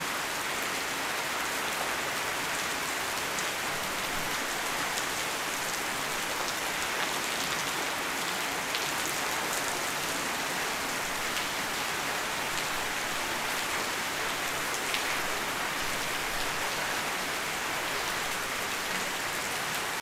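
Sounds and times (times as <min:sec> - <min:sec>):
rain: 0:00.0 - 0:19.9.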